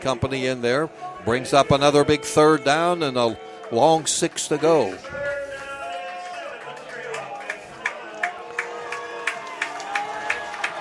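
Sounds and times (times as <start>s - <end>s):
speech: 0.0s - 5.3s
football stadium crowd cheering: 1.3s - 10.8s.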